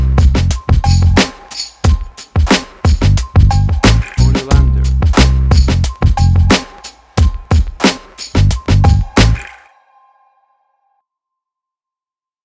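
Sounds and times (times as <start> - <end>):
1990s hip hop music: 0.0 - 9.6.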